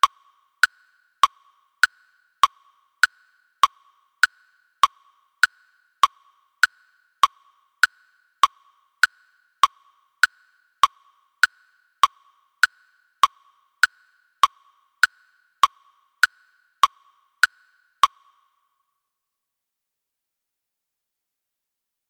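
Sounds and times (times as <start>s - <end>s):
metronome clicks at 100 bpm: 3.0s - 18.4s.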